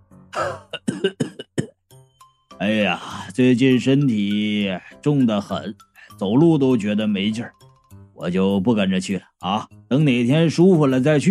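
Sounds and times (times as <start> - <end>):
speech: 0.4 - 1.3, 2.6 - 7.6, 8.2 - 11.2
man coughing in harsh rasping bursts: 0.4 - 1.8.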